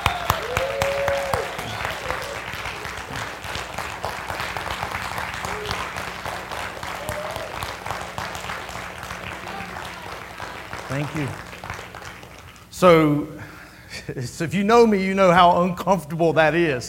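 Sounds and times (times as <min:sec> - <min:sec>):
audience applause: 0:00.0 - 0:13.0
speech: 0:11.0 - 0:11.4, 0:12.8 - 0:13.4, 0:14.1 - 0:16.8.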